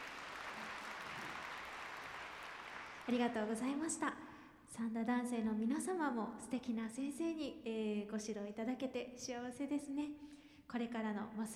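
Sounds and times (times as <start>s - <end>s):
audience applause: 0.0s - 3.5s
speech: 3.1s - 11.5s.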